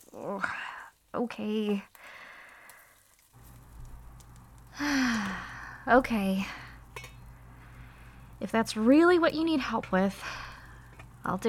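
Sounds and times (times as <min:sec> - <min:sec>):
speech: 0:00.2 - 0:00.6, 0:01.2 - 0:01.9, 0:04.8 - 0:06.6, 0:08.4 - 0:10.4, 0:11.2 - 0:11.4
person taking a deep breath: 0:02.0 - 0:03.2, 0:04.7 - 0:08.4, 0:10.2 - 0:11.1.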